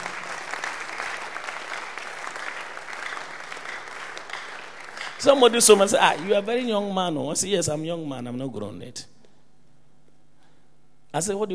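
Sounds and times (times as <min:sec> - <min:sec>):
audience clapping: 0:00.0 - 0:06.8
speech: 0:05.2 - 0:09.1, 0:11.1 - 0:11.5.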